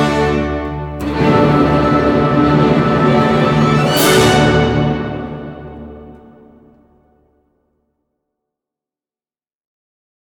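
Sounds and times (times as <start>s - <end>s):
first movement of an instrumental piece: 0.0s - 7.2s.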